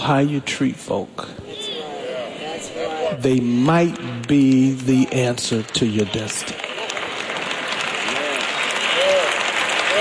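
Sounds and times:
speech: 0:00.0 - 0:01.5, 0:03.1 - 0:06.6
audience applause during a talk: 0:04.3 - 0:09.9.

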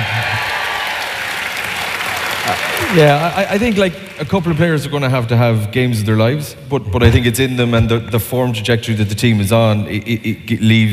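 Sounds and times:
audience cheering: 0:00.0 - 0:04.8
speech: 0:02.5 - 0:10.9.

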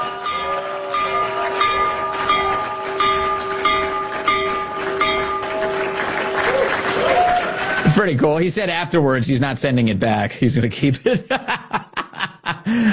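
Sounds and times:
stock exchange opening bell ringing: 0:00.0 - 0:06.8
applause: 0:00.0 - 0:08.5
crowd noise: 0:00.0 - 0:09.4
speech: 0:08.0 - 0:11.6
laughter: 0:10.9 - 0:12.9.

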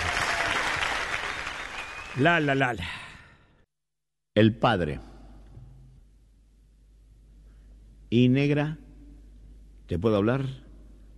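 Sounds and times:
audience applause: 0:00.0 - 0:02.8
speech: 0:02.2 - 0:03.0, 0:04.4 - 0:05.1, 0:08.1 - 0:08.8, 0:09.9 - 0:10.6.

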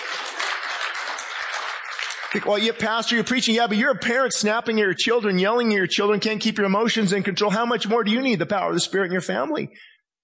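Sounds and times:
audience clapping: 0:00.0 - 0:03.8
speech: 0:02.3 - 0:09.9.

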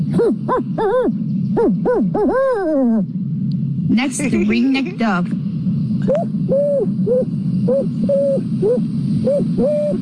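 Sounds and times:
human imitation of a barn owl call: 0:00.0 - 0:03.1, 0:06.0 - 0:10.0
speech: 0:00.2 - 0:03.2, 0:03.9 - 0:05.4, 0:06.0 - 0:10.0.

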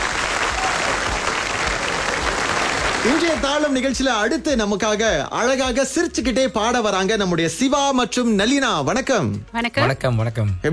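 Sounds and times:
audience applause at a televised music show: 0:00.0 - 0:03.9
speech: 0:03.0 - 0:10.7.

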